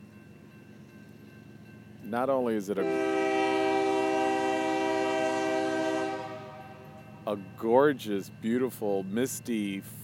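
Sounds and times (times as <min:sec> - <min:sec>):
speech: 0:02.1 - 0:03.2, 0:07.3 - 0:10.0
train horn on a misty foggy night in St. Joey Town: 0:02.8 - 0:07.1.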